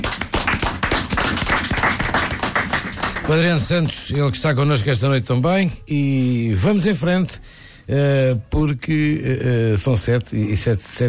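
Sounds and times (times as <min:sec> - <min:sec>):
crowd applauding: 0:00.0 - 0:04.0
speech: 0:03.3 - 0:11.0.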